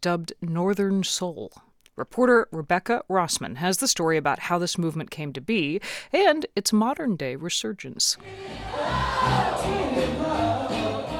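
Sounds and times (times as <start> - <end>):
speech: 0.0 - 10.8
crowd roar of voices in a sold-out East London club: 8.2 - 11.1
soul music: 8.2 - 11.1.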